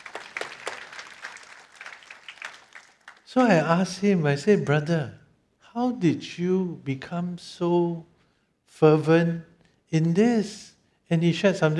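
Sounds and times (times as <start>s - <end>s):
audience clapping: 0.0s - 3.8s
speech: 3.3s - 5.2s, 5.8s - 8.1s, 8.7s - 11.7s.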